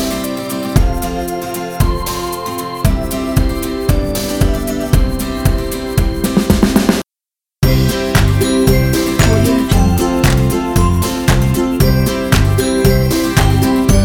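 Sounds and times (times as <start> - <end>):
happy upbeat uplifting ukulele music: 0.0 - 6.9, 7.6 - 14.0.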